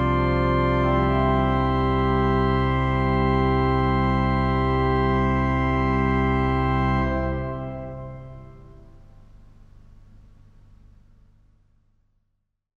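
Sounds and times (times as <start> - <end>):
organ prelude: 0.0 - 9.8.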